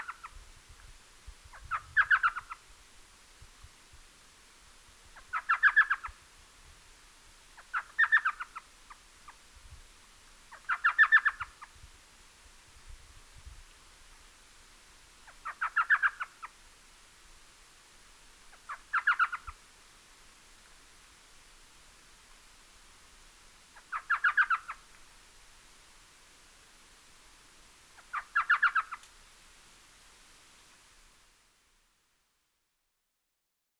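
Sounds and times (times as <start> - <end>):
Elf Owl Micrathene whitneyi calling: 0.0 - 0.4, 1.5 - 2.6, 5.2 - 6.2, 7.6 - 9.4, 10.5 - 11.8, 15.2 - 16.6, 18.5 - 19.6, 23.7 - 25.0, 27.9 - 29.2.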